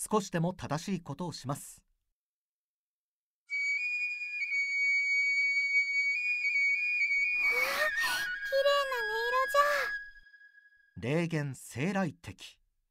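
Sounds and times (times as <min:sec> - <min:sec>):
speech: 0:00.0 - 0:01.9, 0:11.0 - 0:12.6
flute or whistle playing: 0:03.5 - 0:11.0.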